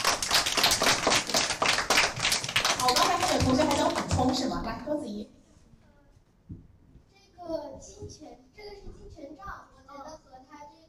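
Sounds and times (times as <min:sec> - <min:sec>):
classroom applause from students: 0:00.0 - 0:04.6
speech: 0:04.3 - 0:05.4.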